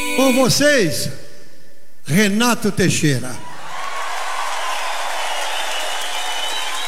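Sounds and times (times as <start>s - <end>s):
speech: 0.2s - 1.2s, 2.1s - 3.5s
audience applause: 3.6s - 6.8s.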